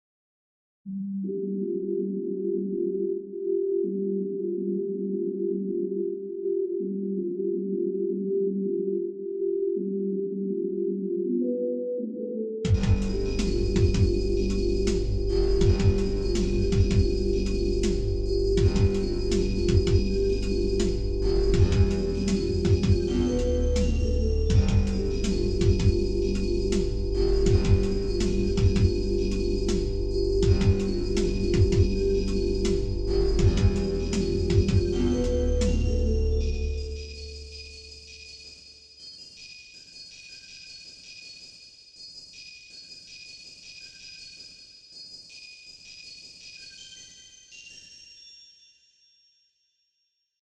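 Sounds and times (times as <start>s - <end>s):
wet software synthesizers: 0.9s - 38.1s.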